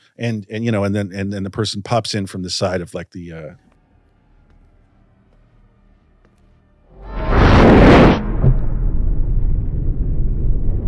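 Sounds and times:
speech: 0.2s - 3.6s
sustained low rumble from a film dumpster scene: 3.8s - 10.8s
roaring whoosh from a film dumpster scene sound effect: 6.9s - 10.4s.

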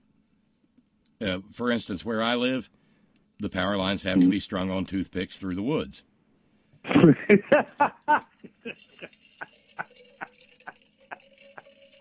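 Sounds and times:
speech: 1.2s - 2.8s, 3.4s - 6.1s, 6.8s - 10.4s
laughter: 6.9s - 9.1s
refilling a water bottle: 8.7s - 12.0s.

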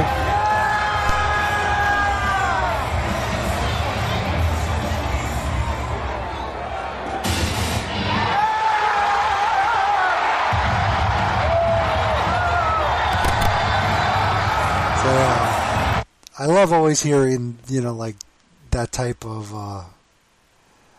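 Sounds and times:
crowd shouts, whoops and yells: 0.0s - 4.1s, 8.0s - 16.0s
wrestling arena crowd roaring and cheering: 0.0s - 16.1s
speech: 16.6s - 20.0s.

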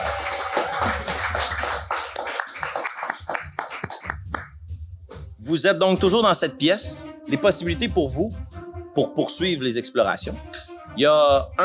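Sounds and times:
applause, hand clapping: 0.0s - 4.5s
speech: 5.5s - 11.6s.

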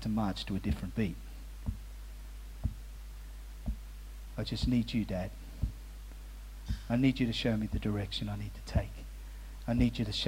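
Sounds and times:
speech: 0.0s - 1.8s, 4.4s - 5.4s, 6.9s - 9.0s, 9.7s - 10.2s
steady low hum: 0.8s - 10.1s
slow heartbeat: 1.6s - 6.0s, 6.6s - 8.0s, 8.7s - 9.1s, 9.8s - 10.0s.

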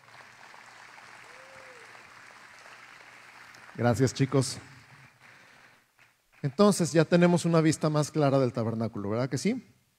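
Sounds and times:
crowd applauding in a room: 0.0s - 6.9s
speech: 3.8s - 4.8s, 6.4s - 9.8s.

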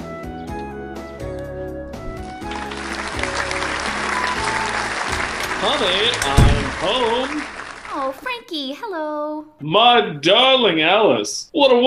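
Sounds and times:
musical jingle: 1.9s - 6.2s
live studio audience applause for a sitcom: 2.2s - 8.4s
speech: 5.6s - 7.4s, 8.1s - 11.8s.

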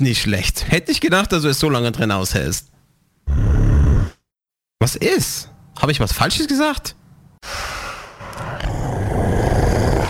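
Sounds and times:
speech: 0.0s - 2.7s, 4.8s - 7.8s
monster growling: 3.3s - 4.2s, 8.2s - 10.0s
heavy snorting breaths: 7.4s - 10.0s.

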